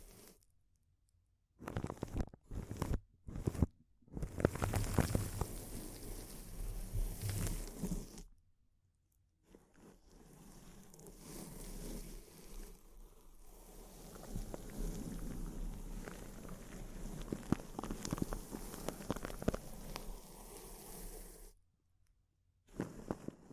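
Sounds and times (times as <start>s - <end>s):
intense close-up crinkles: 1.6s - 8.3s, 10.7s - 21.4s.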